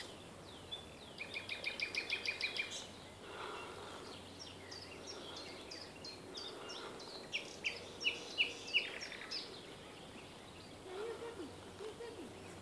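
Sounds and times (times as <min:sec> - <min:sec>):
common nightingale singing: 0:00.0 - 0:03.2, 0:04.3 - 0:12.6.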